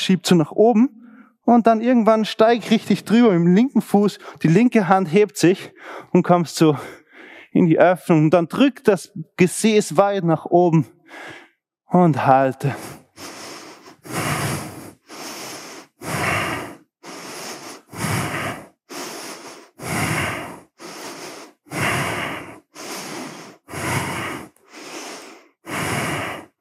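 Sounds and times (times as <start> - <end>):
speech: 0.0 - 13.4
slow deep breathing while holding a yoga pose: 1.0 - 1.4, 6.8 - 7.6, 11.0 - 11.6, 12.7 - 26.6.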